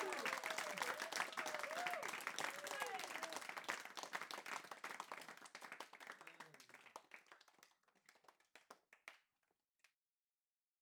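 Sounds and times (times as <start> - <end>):
people shouting bravo: 0.0 - 3.3
audience applauding: 0.0 - 9.0.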